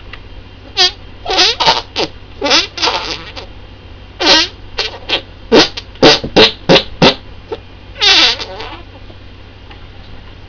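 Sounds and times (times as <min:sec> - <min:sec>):
fart: 0:00.8 - 0:03.5, 0:04.2 - 0:07.2, 0:08.0 - 0:08.9.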